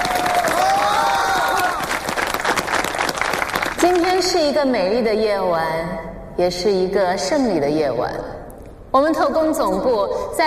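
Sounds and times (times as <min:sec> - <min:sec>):
audience cheering: 0:00.0 - 0:03.6
audience applause: 0:00.0 - 0:04.1
speech: 0:03.8 - 0:10.4.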